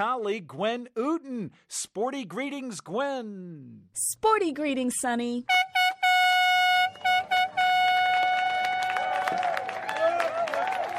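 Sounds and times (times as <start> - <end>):
speech: 0.0 - 5.7
horn blast at race start: 5.5 - 9.6
people cheering: 6.9 - 10.9.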